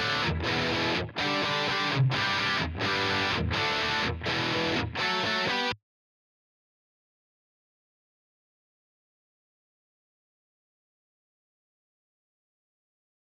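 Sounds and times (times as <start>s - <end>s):
guitar stem: 0.0s - 5.8s.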